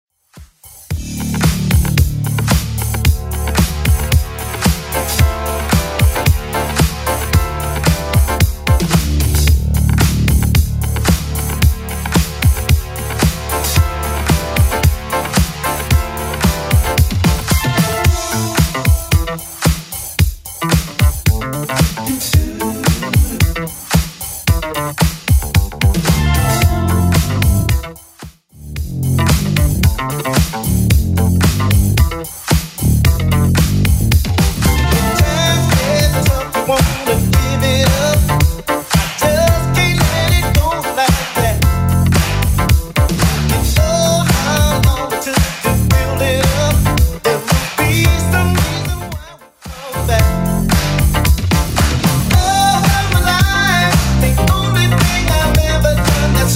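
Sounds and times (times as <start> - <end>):
1980s club edit at 112 BPM: 0.9 - 28.2, 29.1 - 56.5.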